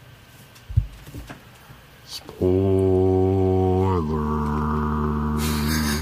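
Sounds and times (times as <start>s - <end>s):
person speaking: 2.0s - 6.0s
voice imitating a foghorn: 2.4s - 6.0s.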